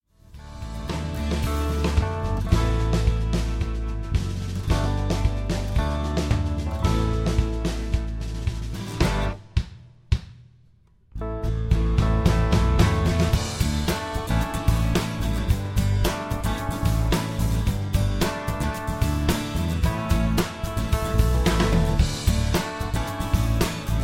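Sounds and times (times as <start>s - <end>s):
backing track: 0.3s - 10.4s, 11.2s - 24.0s.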